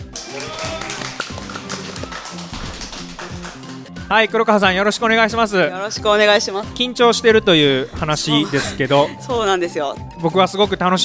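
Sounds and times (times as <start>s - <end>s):
audience applause welcoming a guest: 0.0s - 3.9s
speech: 4.1s - 11.0s
laughter: 7.6s - 9.4s.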